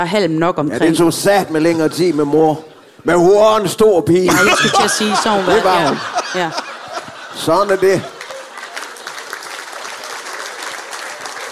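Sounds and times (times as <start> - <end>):
speech: 0.0 - 6.6, 7.4 - 8.2
laughter: 0.9 - 3.4, 4.3 - 11.4
audience applause: 4.3 - 11.4.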